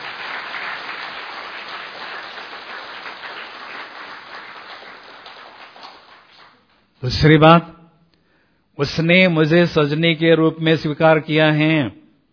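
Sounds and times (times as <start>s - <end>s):
audience applause: 0.0s - 6.8s
speech: 7.0s - 7.8s, 8.8s - 12.0s.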